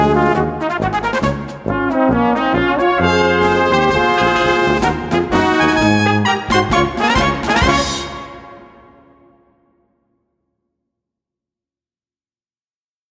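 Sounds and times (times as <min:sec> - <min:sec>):
march music: 0:00.0 - 0:09.4.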